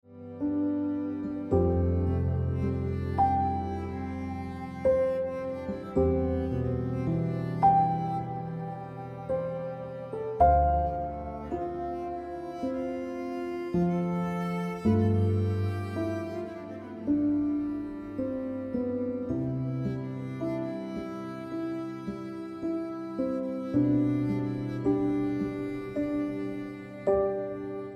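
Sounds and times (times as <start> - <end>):
piano ringtone music: 0.2 - 27.9.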